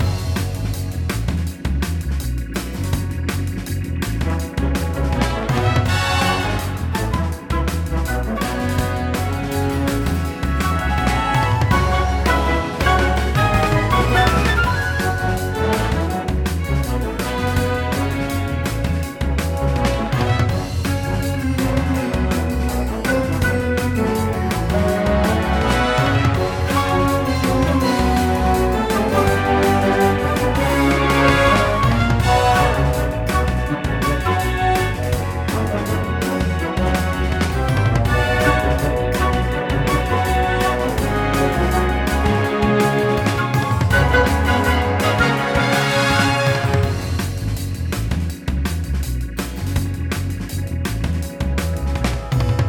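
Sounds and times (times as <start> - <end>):
level music loop: 0.0 - 52.6.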